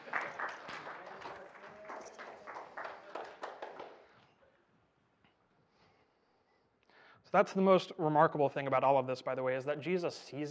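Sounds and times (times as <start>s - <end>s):
audience applauding: 0.0s - 4.2s
speech: 7.3s - 10.4s.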